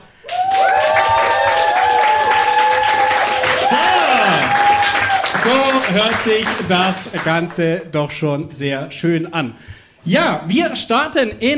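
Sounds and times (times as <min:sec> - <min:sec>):
live audience applauding and cheering: 0:00.0 - 0:07.6
whoops and shouts: 0:00.2 - 0:05.5
speech: 0:06.0 - 0:11.5.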